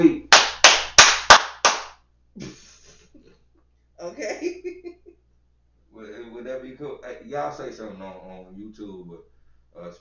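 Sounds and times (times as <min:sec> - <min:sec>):
speech: 0:00.0 - 0:00.2, 0:06.8 - 0:09.9
makeshift clap sound effect: 0:00.3 - 0:02.0.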